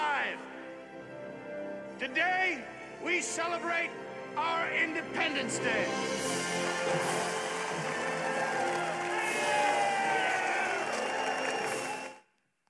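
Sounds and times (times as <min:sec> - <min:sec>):
speech: 0:02.0 - 0:07.2
large crowd cheering in a film clip: 0:06.1 - 0:12.3
scattered shouts and whoops: 0:07.0 - 0:12.2.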